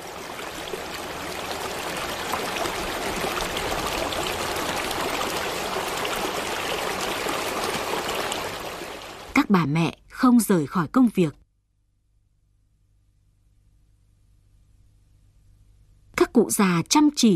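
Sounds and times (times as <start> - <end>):
mountain headwater stream flowing in the highlands: 0.0 - 9.4
speech: 9.5 - 11.4, 16.5 - 17.3.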